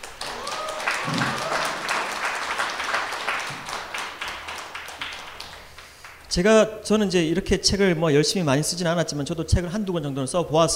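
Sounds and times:
audience applause: 0:00.0 - 0:06.2
speech: 0:06.3 - 0:10.7.

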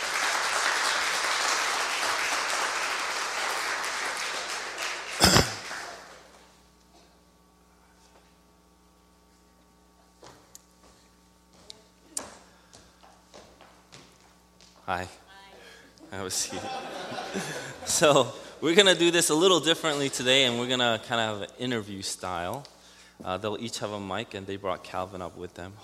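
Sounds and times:
audience applauding to welcome guests on stage: 0:00.0 - 0:06.5
low electrical hum: 0:00.0 - 0:25.8
speech: 0:14.9 - 0:15.2, 0:16.1 - 0:25.8
laughter: 0:16.0 - 0:18.5.

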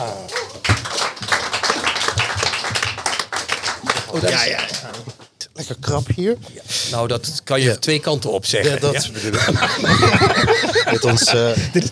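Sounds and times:
audience applause: 0:00.0 - 0:05.2
speech: 0:04.1 - 0:11.9
laughter: 0:08.7 - 0:11.9.

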